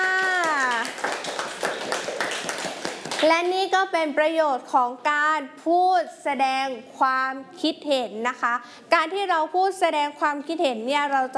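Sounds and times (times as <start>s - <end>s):
classroom applause for a student: 0.0s - 3.5s
speech: 3.2s - 11.3s.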